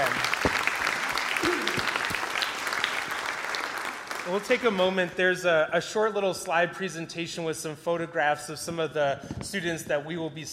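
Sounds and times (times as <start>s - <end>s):
audience applause for students: 0.0s - 4.9s
speech: 4.3s - 10.5s.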